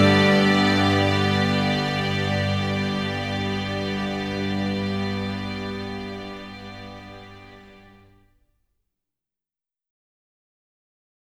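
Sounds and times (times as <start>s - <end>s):
acoustic music: 0.0s - 7.9s.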